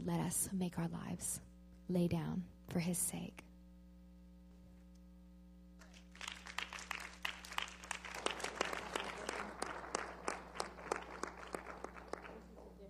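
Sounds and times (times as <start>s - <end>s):
speech: 0.0s - 3.5s
audience clapping: 5.8s - 12.8s.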